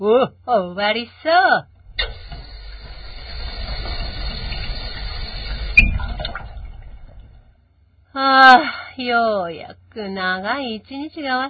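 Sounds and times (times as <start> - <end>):
speech: 0.0 - 2.2, 8.2 - 11.4
water poured to rinse off a surface after scrubbing: 1.8 - 7.6.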